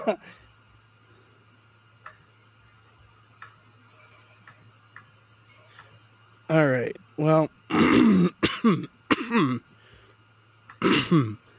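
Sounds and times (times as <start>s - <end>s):
speech: 0.0s - 0.4s, 6.5s - 9.7s, 10.8s - 11.4s
person clearing throat: 7.7s - 9.6s, 10.8s - 11.4s.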